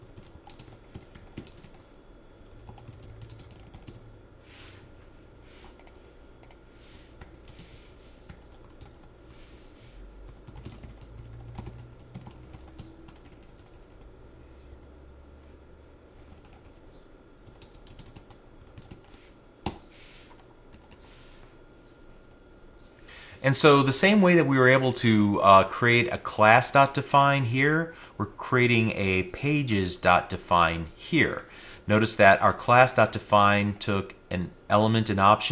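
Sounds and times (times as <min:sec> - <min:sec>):
typing on a computer keyboard: 0:00.0 - 0:01.9, 0:02.5 - 0:04.0, 0:08.3 - 0:09.1, 0:10.3 - 0:14.0, 0:16.2 - 0:16.8, 0:17.4 - 0:19.8
speech: 0:23.4 - 0:35.5.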